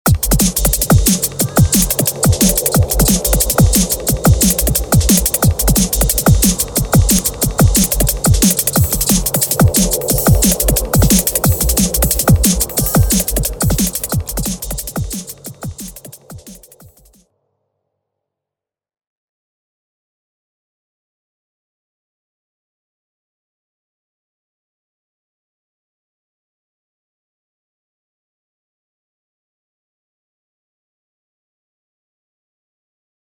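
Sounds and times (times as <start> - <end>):
music loop: 0.1 - 17.2.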